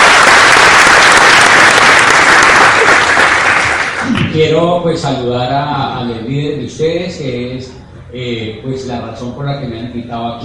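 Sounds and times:
audience applause: 0.0s - 4.2s
speech: 4.4s - 10.4s.

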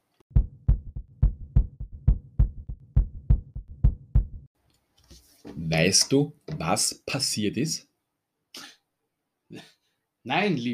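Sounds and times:
heartbeat thumps: 0.3s - 4.5s
speech: 5.5s - 7.9s, 10.3s - 10.7s.

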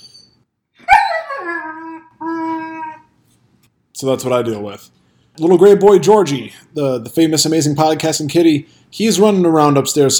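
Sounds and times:
puppy whining: 0.8s - 3.2s
speech: 4.0s - 10.1s.

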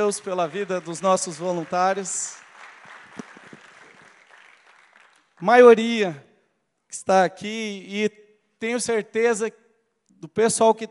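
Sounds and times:
speech: 0.0s - 2.4s, 5.4s - 6.3s, 6.9s - 9.6s, 10.2s - 10.8s
crowd applauding: 0.0s - 5.6s.

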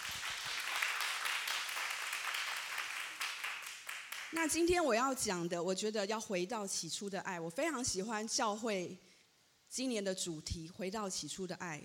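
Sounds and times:
audience applause: 0.0s - 4.4s
speech: 4.3s - 9.1s, 9.7s - 11.8s.

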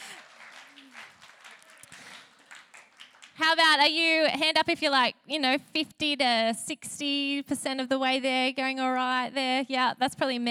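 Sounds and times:
faint audience applause: 0.0s - 3.4s
speech: 3.5s - 10.4s.

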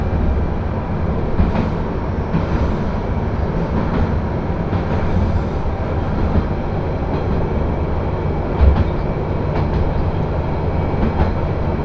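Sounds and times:
train on the Akechi Railway from Akechi toward Ena: 0.0s - 11.8s.

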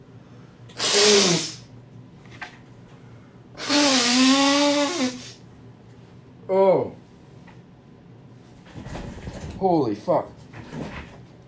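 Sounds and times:
nose blowing: 0.7s - 1.7s, 3.6s - 5.4s
speech: 9.6s - 10.4s.

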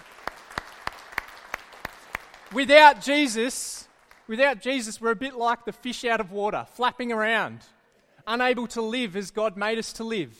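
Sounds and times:
audience applause: 0.0s - 3.2s, 3.9s - 4.3s
speech: 2.5s - 10.3s.

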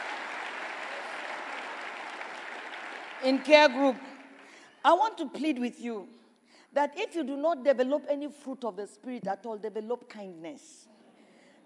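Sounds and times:
audience clapping hands: 0.0s - 4.7s
speech: 3.2s - 4.1s, 4.8s - 10.9s.

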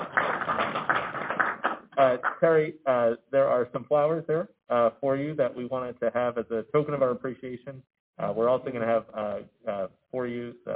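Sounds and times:
audience applause: 0.0s - 2.4s
speech: 2.0s - 10.7s.

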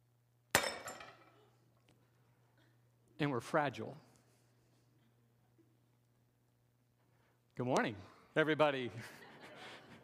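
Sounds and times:
clay pot smashing: 0.5s - 1.2s
speech: 3.2s - 4.1s, 7.6s - 9.2s
laughter: 8.9s - 10.0s.

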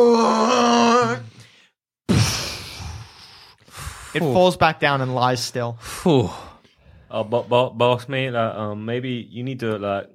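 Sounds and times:
voice imitating a giant worm's roar: 0.0s - 1.3s
speech: 4.1s - 6.5s, 7.1s - 10.1s.

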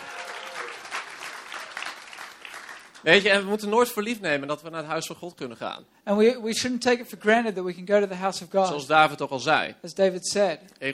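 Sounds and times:
audience applause: 0.0s - 3.1s
speech: 3.0s - 10.9s.

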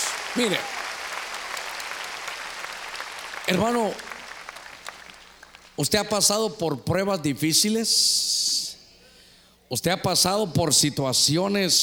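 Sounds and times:
audience clapping loudly: 0.0s - 5.8s
speech: 0.4s - 0.8s, 3.5s - 4.1s, 5.8s - 8.5s, 9.7s - 11.8s.

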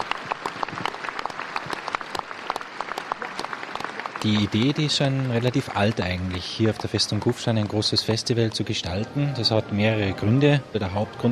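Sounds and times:
enthusiastic applause from a large crowd: 0.0s - 8.5s
speech: 4.2s - 11.3s.

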